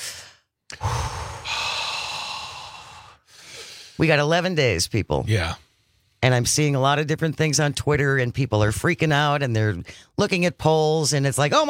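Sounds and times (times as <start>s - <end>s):
group taking a collective cleansing breath: 0.0s - 4.0s
speech: 4.0s - 5.6s, 6.2s - 11.6s.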